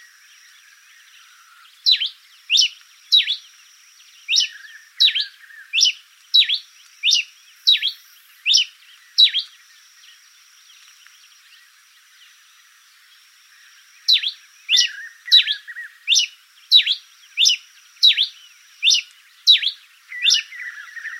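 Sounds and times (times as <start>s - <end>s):
Coryphospingus pileatus call: 4.3s - 9.6s, 14.0s - 21.1s.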